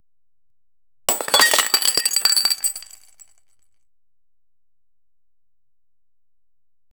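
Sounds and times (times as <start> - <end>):
realistic glass bowl: 1.1 - 3.2.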